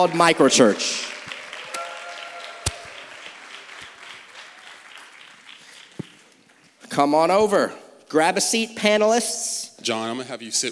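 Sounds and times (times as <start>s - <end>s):
speech: 0.0s - 1.1s, 7.0s - 10.7s
audience applause: 0.0s - 6.8s.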